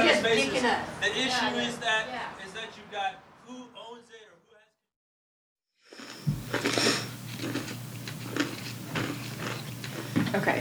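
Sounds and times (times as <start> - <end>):
speech: 0.2 - 4.2, 10.3 - 10.6
crunching on a chip: 6.0 - 10.4.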